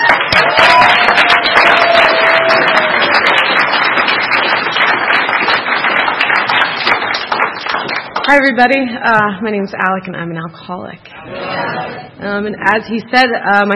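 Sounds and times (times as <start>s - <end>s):
crowd applauding: 0.0s - 8.3s
speech: 8.3s - 13.7s.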